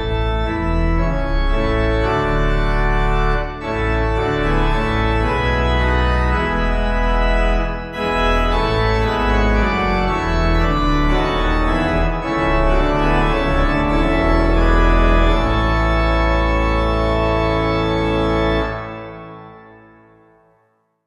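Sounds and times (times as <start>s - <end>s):
pipe playing a hymn: 0.0s - 20.2s.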